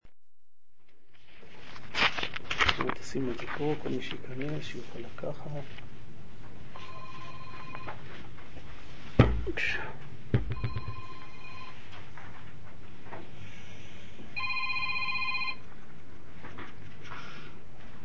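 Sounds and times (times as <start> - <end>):
speech: 3.1 - 6.0, 9.5 - 10.7
telephone electronic ringtone: 6.8 - 8.0, 10.6 - 11.9, 14.4 - 15.6
clunky handling knocks: 9.1 - 9.6, 10.3 - 11.2.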